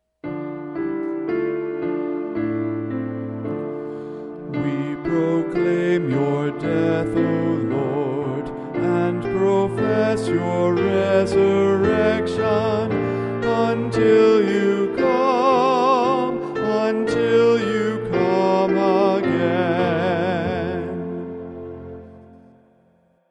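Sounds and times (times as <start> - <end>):
hymn melody: 0.3 - 22.8.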